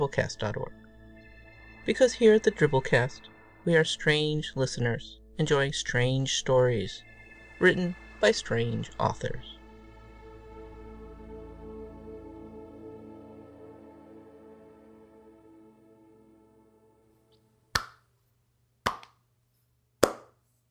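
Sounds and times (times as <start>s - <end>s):
speech: 0.0s - 0.8s, 1.8s - 9.6s
slow golf clap: 17.8s - 18.0s, 18.9s - 19.1s, 20.0s - 20.3s.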